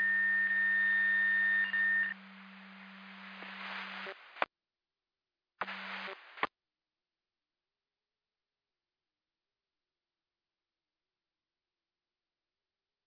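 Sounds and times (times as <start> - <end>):
siren: 0.0 - 2.1.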